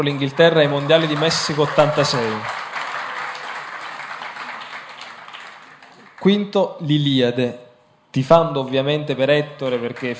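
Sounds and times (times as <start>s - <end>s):
speech: 0.0s - 2.6s, 6.2s - 10.1s
audience applause: 0.0s - 6.4s.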